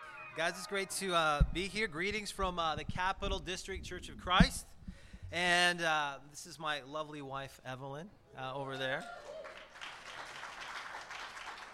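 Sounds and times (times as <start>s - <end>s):
speech: 0.4s - 4.7s, 5.3s - 9.3s
audience applause at a church gathering: 9.1s - 11.7s.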